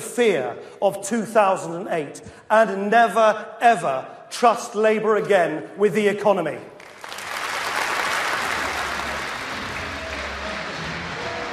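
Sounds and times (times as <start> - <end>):
speech: 0.2 - 6.7
crowd cheering in the hall: 6.8 - 11.5.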